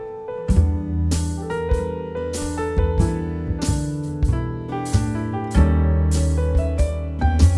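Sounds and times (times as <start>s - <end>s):
swing music: 0.5s - 7.5s.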